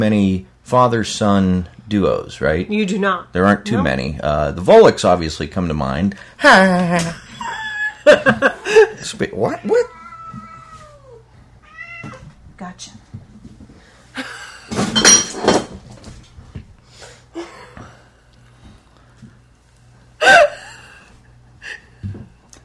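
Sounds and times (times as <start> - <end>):
speech: 0.0 - 7.2, 8.0 - 10.0, 12.6 - 13.0
laughter: 6.6 - 9.1
cat knocking over empty beer bottles: 14.7 - 15.8
wine glass falling over: 14.7 - 15.8.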